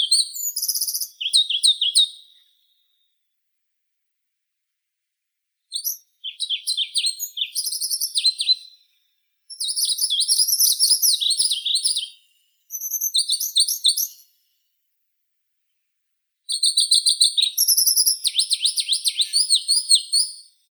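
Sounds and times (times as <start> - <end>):
Pallas's leaf warbler Phylloscopus proregulus singing: 0.0 - 2.2, 5.7 - 8.8, 9.5 - 14.3, 16.5 - 20.4.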